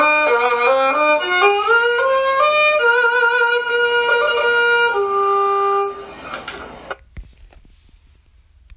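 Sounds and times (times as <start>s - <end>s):
zhongu strings: 0.0s - 7.0s.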